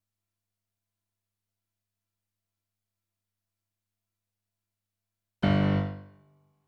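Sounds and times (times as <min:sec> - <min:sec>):
rock and roll piano: 0:05.4 - 0:06.1.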